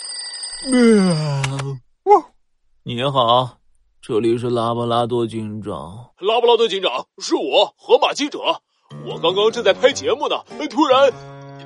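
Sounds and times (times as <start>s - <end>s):
telephone ringing: 0.0s - 0.7s
speech: 0.6s - 11.6s.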